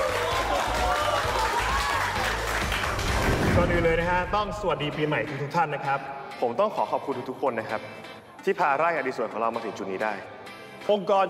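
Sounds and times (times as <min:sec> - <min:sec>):
audience clapping hands: 0:00.0 - 0:04.1
speech: 0:03.6 - 0:11.2.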